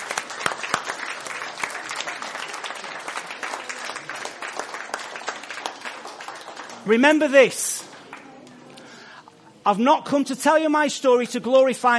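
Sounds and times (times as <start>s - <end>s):
audience applause: 0.0s - 8.4s
speech: 6.9s - 7.8s, 9.6s - 11.9s.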